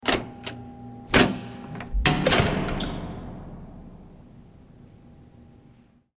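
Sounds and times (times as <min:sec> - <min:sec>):
door: 0:01.2 - 0:03.3.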